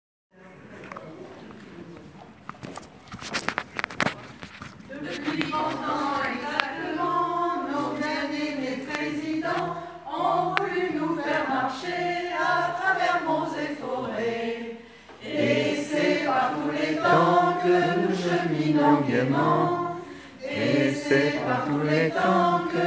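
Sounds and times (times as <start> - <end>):
chorale: 4.9 - 22.8.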